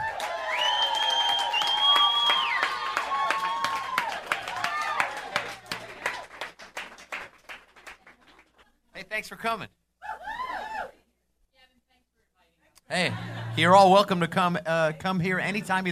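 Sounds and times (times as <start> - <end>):
audience applause welcoming a singer at a live radio-station performance: 0.0 - 8.6
speech: 9.2 - 9.8, 12.9 - 15.8
laughter: 12.9 - 14.3.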